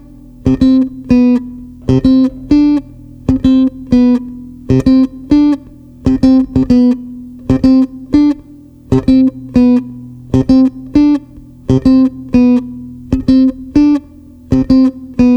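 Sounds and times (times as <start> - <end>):
blues harmony: 0.0 - 15.3.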